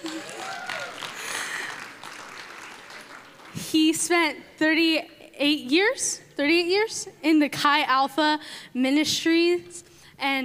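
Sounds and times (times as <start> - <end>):
audience applause: 0.0 - 3.6
speech: 3.7 - 10.4.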